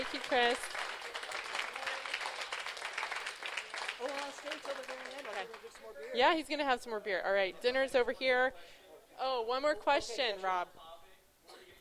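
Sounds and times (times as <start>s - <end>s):
audience applause: 0.0s - 5.9s
speech: 0.3s - 0.8s, 4.3s - 10.9s.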